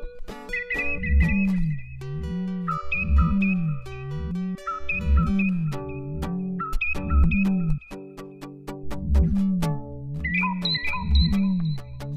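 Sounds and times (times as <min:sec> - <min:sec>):
curlew singing: 0:00.5 - 0:08.2, 0:10.3 - 0:12.0.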